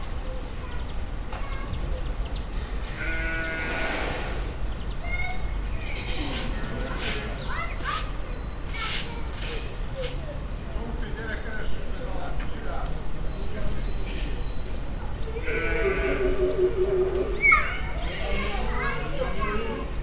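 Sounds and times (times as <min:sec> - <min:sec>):
varied background noise: 0:00.0 - 0:20.0
Nile hippopotamus breathing: 0:03.6 - 0:04.7.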